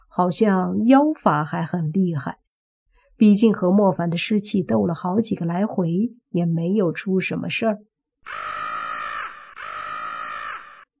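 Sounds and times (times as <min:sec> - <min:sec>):
speech: 0:00.2 - 0:02.4, 0:03.2 - 0:08.5
crow cawing: 0:08.2 - 0:10.9.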